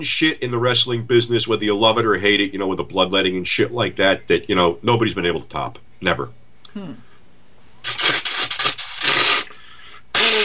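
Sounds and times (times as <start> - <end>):
speech: 0.0 - 7.0
person blowing nose: 7.8 - 10.4.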